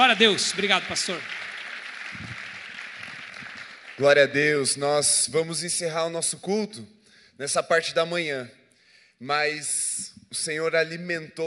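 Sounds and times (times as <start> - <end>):
speech: 0.0 - 1.4, 4.0 - 8.6, 9.2 - 11.4
audience applause: 0.0 - 4.5.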